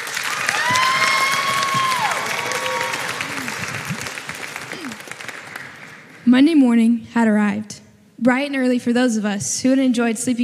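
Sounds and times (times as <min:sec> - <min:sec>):
room full of people clapping: 0:00.0 - 0:06.3
whoops and cheers: 0:00.3 - 0:03.9
speech: 0:06.3 - 0:10.4.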